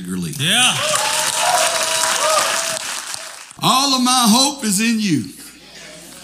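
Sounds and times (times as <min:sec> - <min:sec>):
speech: 0:00.0 - 0:01.1, 0:03.6 - 0:05.4
audience applause: 0:00.4 - 0:03.6
cheers and whoops: 0:00.6 - 0:03.4.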